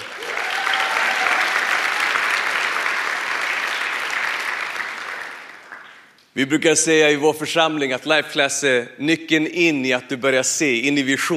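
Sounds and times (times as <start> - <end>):
audience applause: 0.0 - 6.1
speech: 6.4 - 11.3.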